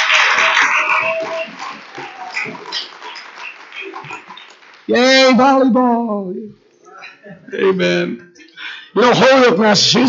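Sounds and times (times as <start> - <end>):
audience clapping and cheering for a girls' volleyball team: 0.0 - 5.8
speech: 4.9 - 6.6, 7.2 - 10.0.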